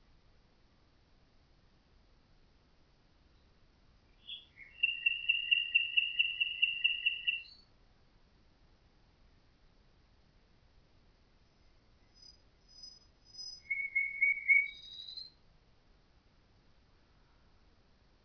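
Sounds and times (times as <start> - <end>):
common nightingale singing with whistled notes and fast rattling trill: 4.1 - 7.7, 11.5 - 15.4.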